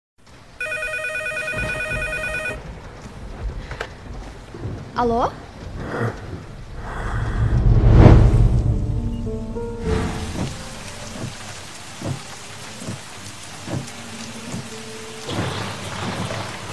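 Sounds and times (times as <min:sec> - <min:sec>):
heavy rain: 0:00.2 - 0:16.7
low rumble of thunder: 0:01.5 - 0:12.6
speech: 0:05.0 - 0:06.3.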